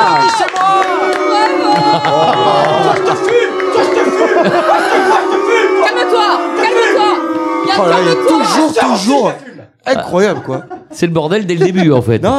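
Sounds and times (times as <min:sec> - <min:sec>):
audience applause: 0:00.0 - 0:08.4
laughter: 0:00.9 - 0:12.2
speech: 0:09.0 - 0:12.3.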